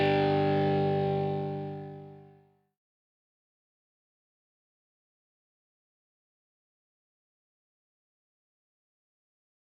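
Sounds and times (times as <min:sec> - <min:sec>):
guitar: 0:00.0 - 0:02.6.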